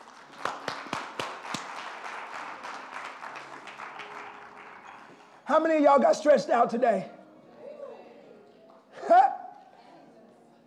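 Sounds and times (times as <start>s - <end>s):
audience clapping hands: 0.0s - 5.5s
speech: 5.5s - 7.2s.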